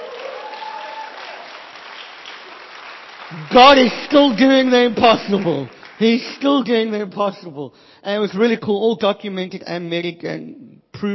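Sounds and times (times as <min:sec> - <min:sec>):
audience applause: 0:00.0 - 0:06.3
speech: 0:03.3 - 0:11.1.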